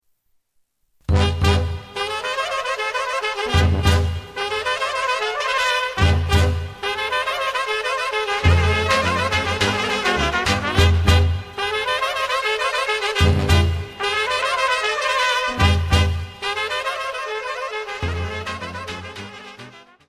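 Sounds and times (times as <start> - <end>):
Macedonian cocek dance music: 1.1 - 17.1.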